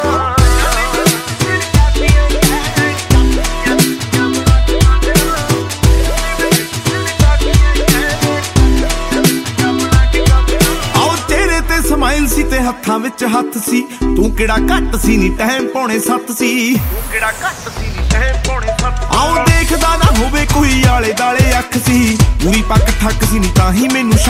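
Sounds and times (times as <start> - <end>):
Punjabi ringtone music: 0.0 - 24.2.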